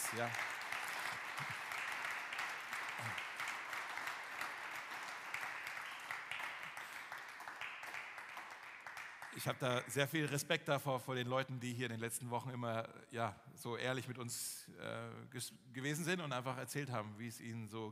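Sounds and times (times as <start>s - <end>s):
audience clapping: 0.0s - 10.4s
speech: 0.1s - 0.4s, 1.4s - 1.6s, 3.0s - 3.3s, 9.4s - 17.9s.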